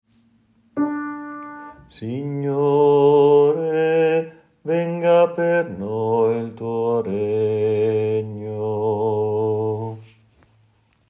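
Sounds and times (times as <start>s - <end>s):
bass voices singing a final acclamation: 1.9s - 10.0s.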